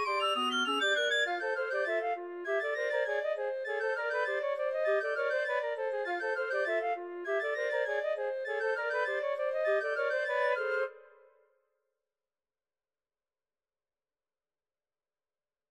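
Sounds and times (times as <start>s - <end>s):
woodwind music: 0.0s - 11.4s.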